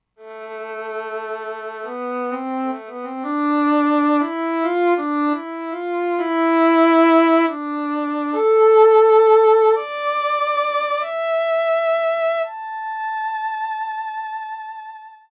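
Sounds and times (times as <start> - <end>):
violin: 0.2 - 15.3.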